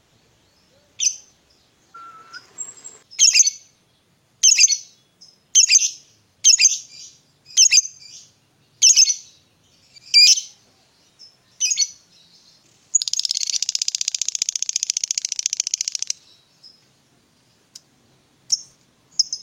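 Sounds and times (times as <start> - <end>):
lovebird calling: 0.6 - 3.6, 4.4 - 5.0, 5.6 - 10.6, 11.2 - 16.8, 18.5 - 19.4.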